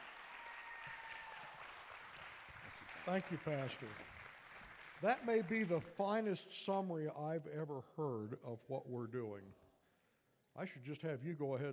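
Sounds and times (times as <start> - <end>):
applause welcoming missionaries at a church service: 0.0 - 6.3
speech: 2.8 - 4.2, 5.0 - 9.6, 10.6 - 11.7.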